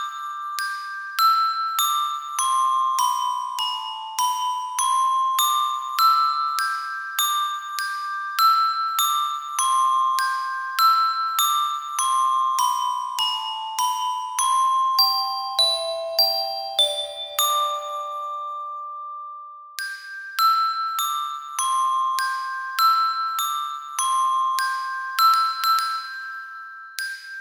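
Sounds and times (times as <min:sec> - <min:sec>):
glockenspiel: 0:00.0 - 0:27.4.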